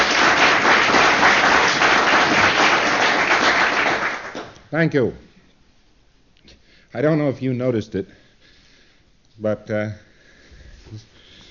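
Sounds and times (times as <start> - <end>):
applause: 0.0 - 4.6
speech: 4.7 - 5.3, 6.9 - 8.2, 9.4 - 10.1, 10.9 - 11.1.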